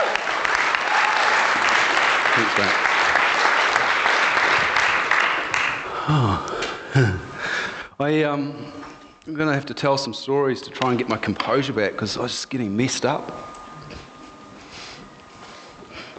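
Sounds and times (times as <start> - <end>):
audience applause: 0.0 - 7.2
speech: 2.4 - 2.8, 6.1 - 7.2, 8.0 - 13.5.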